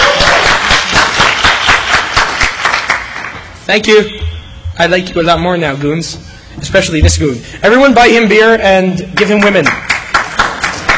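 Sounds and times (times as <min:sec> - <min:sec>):
audience clapping: 0:00.0 - 0:03.6, 0:09.2 - 0:10.9
speech: 0:03.7 - 0:09.9.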